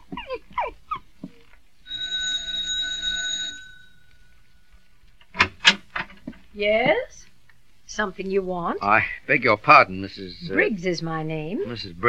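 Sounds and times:
apartment doorbell buzzing: 1.9 - 4.4
speech: 6.6 - 7.3, 7.9 - 12.0.

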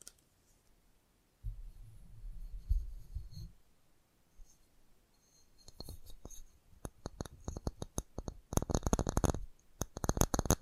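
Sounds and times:
fast tapping clicks: 5.6 - 10.6.

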